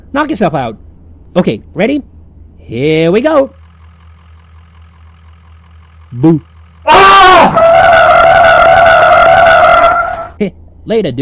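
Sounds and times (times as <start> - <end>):
speech: 0.1 - 3.6, 6.1 - 7.7, 10.4 - 11.2
car braking hard with tire screech: 6.9 - 10.4.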